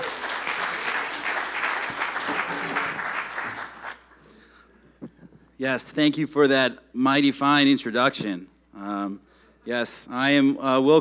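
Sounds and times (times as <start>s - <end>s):
audience applause welcoming a speaker to a church stage: 0.0s - 4.4s
speech: 5.6s - 11.0s.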